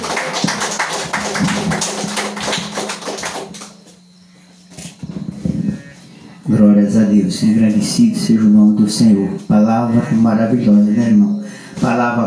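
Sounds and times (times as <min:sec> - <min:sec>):
audience clapping hands: 0:00.0 - 0:04.0
speech: 0:06.6 - 0:12.2.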